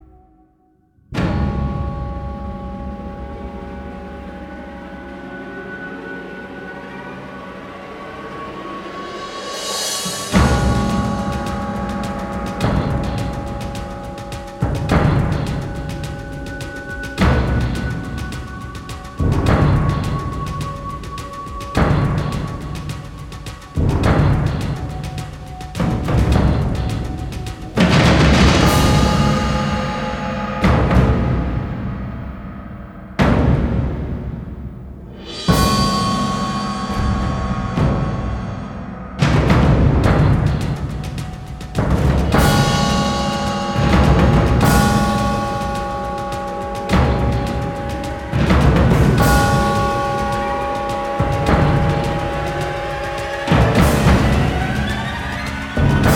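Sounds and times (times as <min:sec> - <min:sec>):
battle music in C sharp minor at 105 bpm: 0:01.2 - 0:56.1.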